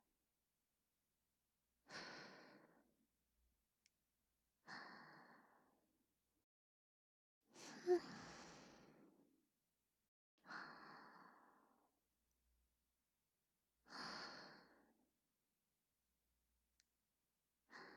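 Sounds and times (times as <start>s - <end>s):
whispered breathing: 1.9s - 2.9s, 4.7s - 5.8s, 7.6s - 9.3s, 10.4s - 11.8s, 13.9s - 15.0s, 17.7s - 17.9s.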